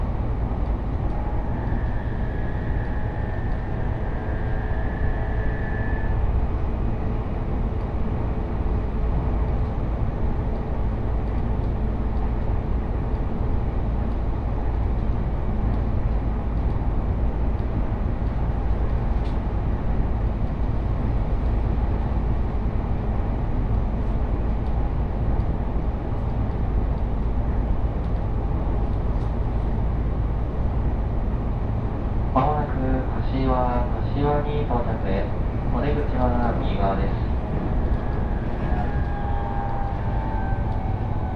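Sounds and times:
Joban Line local train carriage rumbling from Kita-Senju to Abiko: 0:00.0 - 0:41.3
thin whining tones: 0:01.1 - 0:06.8, 0:37.3 - 0:41.3.

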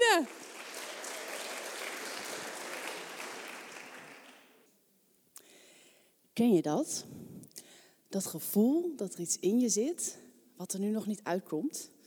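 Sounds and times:
audience applause: 0:00.0 - 0:04.6
speech: 0:06.4 - 0:07.2, 0:08.1 - 0:12.0.

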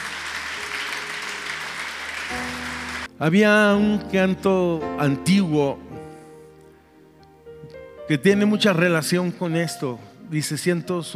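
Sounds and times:
audience applause: 0:00.0 - 0:03.1
speech: 0:03.2 - 0:05.9, 0:08.1 - 0:11.1.

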